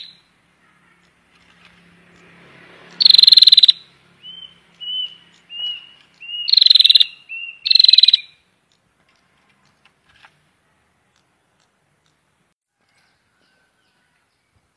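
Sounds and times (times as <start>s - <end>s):
prinia buzzy rattling call bursts: 2.9s - 3.8s, 4.8s - 8.4s.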